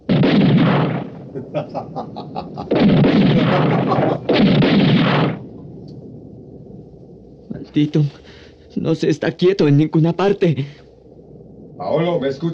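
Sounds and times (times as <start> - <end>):
sharp gunshot cracks and pops: 0.0 - 1.3, 2.7 - 5.6
gunfire volleys during a storm: 0.0 - 1.7, 2.6 - 5.6
laughter: 1.4 - 4.3
speech: 1.5 - 2.4, 7.7 - 10.8, 11.8 - 12.5.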